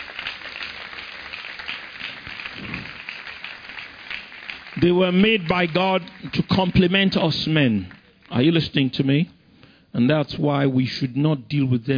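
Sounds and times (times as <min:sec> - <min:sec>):
audience clapping: 0:00.0 - 0:08.8
speech: 0:04.8 - 0:11.9.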